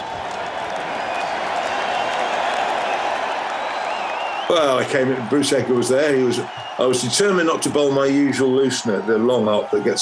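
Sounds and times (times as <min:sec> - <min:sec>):
applause: 0:00.0 - 0:09.9
raucous cricket crowd cheering: 0:00.0 - 0:09.9
speech: 0:04.5 - 0:09.9.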